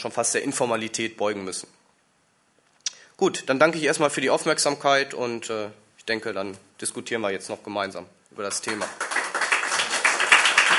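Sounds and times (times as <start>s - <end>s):
speech: 0.0s - 1.8s, 3.2s - 9.0s
audience applause: 8.6s - 10.7s.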